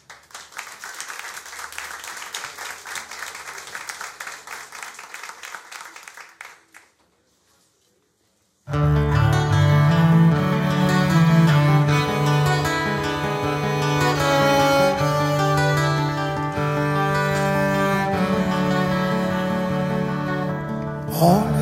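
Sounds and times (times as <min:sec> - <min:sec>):
audience applause: 0:00.0 - 0:07.0, 0:15.2 - 0:20.4
loud instrumental music with low warm tones: 0:08.7 - 0:21.5.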